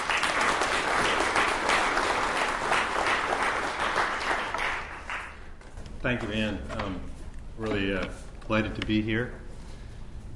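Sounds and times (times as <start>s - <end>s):
audience applause welcoming a speaker at a lecture: 0.0s - 5.5s
speech: 6.0s - 9.4s.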